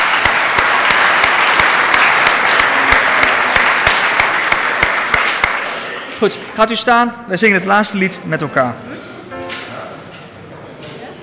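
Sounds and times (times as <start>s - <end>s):
audience applauding: 0.0s - 6.4s
speech: 6.2s - 8.9s.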